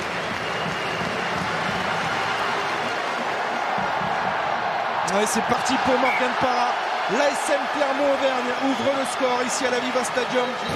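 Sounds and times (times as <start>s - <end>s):
stadium crowd applause: 0.0s - 10.7s
speech: 5.1s - 10.7s.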